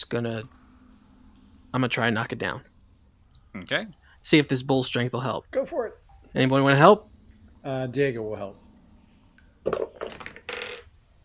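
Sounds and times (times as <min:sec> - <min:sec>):
speech: 0:00.0 - 0:00.6, 0:01.7 - 0:02.7, 0:03.6 - 0:08.6, 0:09.6 - 0:10.2
die clattering across a hard tabletop: 0:09.7 - 0:10.9.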